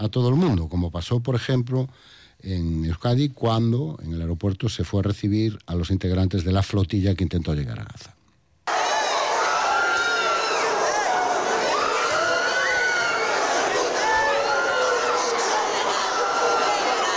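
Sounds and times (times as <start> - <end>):
speech: 0.0 - 8.2
crowd shouting during a police charge: 8.7 - 17.1.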